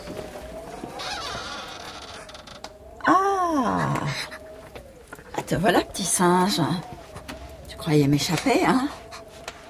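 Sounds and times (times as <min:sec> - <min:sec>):
stiff sticking door creaking open: 0:00.0 - 0:03.1
speech: 0:05.5 - 0:07.0, 0:07.8 - 0:09.0.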